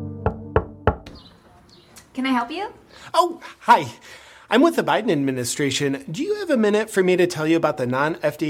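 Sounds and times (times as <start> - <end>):
knocking on a door: 0.2 - 1.2
speech: 2.2 - 8.4.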